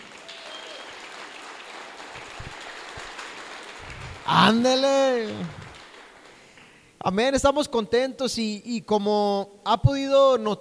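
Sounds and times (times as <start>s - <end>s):
audience applause: 0.0s - 6.8s
speech: 4.3s - 5.6s, 7.0s - 10.5s.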